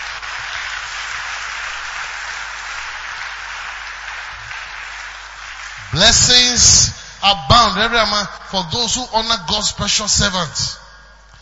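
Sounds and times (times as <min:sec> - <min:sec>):
audience applauding: 0:00.0 - 0:06.8
speech: 0:05.9 - 0:10.8.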